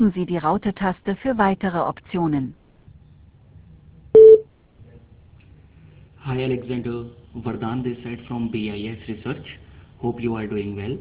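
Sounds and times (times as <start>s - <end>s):
speech: 0.0s - 2.6s, 6.2s - 10.9s
voicemail beep before a message is recorded: 4.2s - 4.4s.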